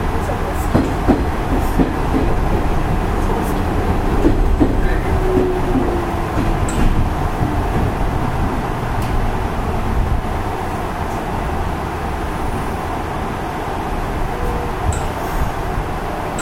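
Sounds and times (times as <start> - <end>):
Nishitetsu 5000 series train wheels and motor roaring: 0.0 - 16.4.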